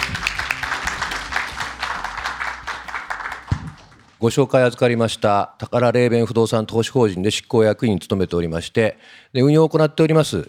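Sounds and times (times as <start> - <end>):
crowd applauding: 0.0 - 4.2
speech: 4.2 - 10.4.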